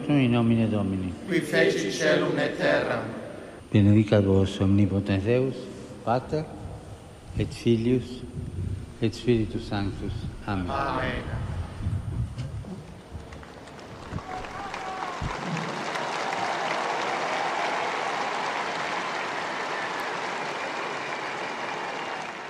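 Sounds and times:
speech: 0.1s - 6.6s, 7.4s - 11.4s
crowd of pilgrims applauding: 12.9s - 22.4s.

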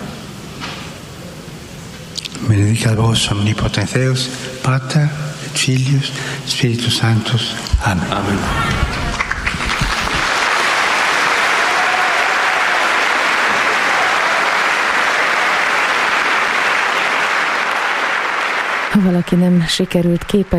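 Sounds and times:
speech: 2.5s - 8.8s, 19.0s - 20.5s
thunderous applause from large audience: 7.8s - 19.7s.

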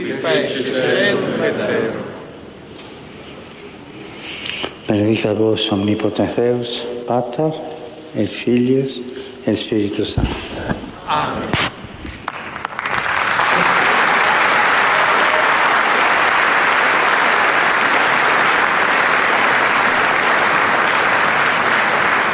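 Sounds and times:
speech: 0.0s - 2.1s, 4.9s - 10.5s, 11.1s - 11.6s
huge crowd of pilgrims applauding: 12.2s - 22.3s.

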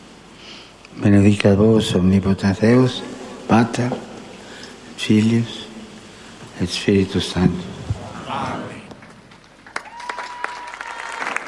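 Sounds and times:
speech: 0.9s - 4.1s, 5.0s - 5.6s, 6.6s - 7.7s
crowd of pilgrims applauding: 8.3s - 11.4s.

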